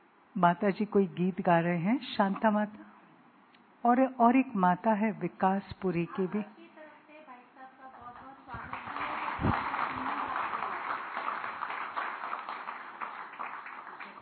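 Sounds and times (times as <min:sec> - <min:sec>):
speech: 0:00.4 - 0:02.9, 0:03.8 - 0:06.6
audience clapping: 0:08.0 - 0:14.2.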